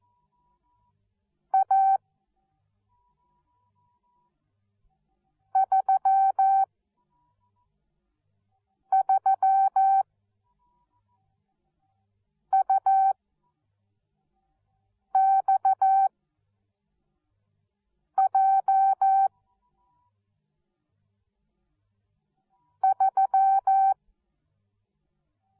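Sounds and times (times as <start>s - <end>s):
morse code beeps: 1.6s - 2.0s, 5.6s - 6.7s, 8.9s - 10.0s, 12.5s - 13.2s, 15.2s - 16.1s, 18.2s - 19.3s, 22.8s - 24.0s.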